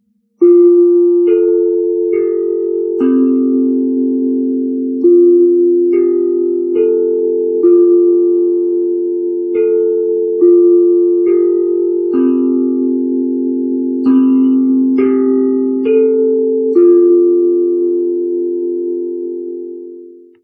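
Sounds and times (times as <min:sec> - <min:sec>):
chime: 0:00.4 - 0:20.4.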